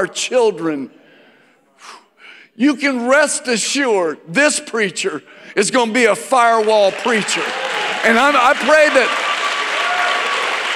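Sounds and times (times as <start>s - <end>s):
speech: 0.0s - 1.0s, 1.8s - 2.0s, 2.6s - 9.2s
congregation clapping during a church sermon: 6.0s - 10.7s.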